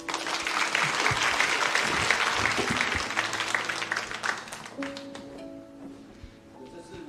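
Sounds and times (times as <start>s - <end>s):
audience applause: 0.0s - 5.3s.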